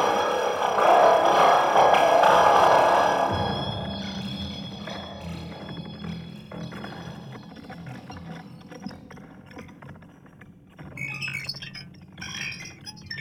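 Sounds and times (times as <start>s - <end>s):
siren: 0.0s - 7.7s.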